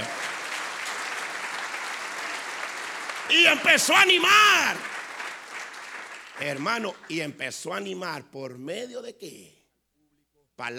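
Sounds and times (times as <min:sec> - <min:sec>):
applause from a large audience: 0:00.0 - 0:07.3
speech: 0:03.3 - 0:04.9, 0:06.4 - 0:09.6, 0:10.6 - 0:10.7.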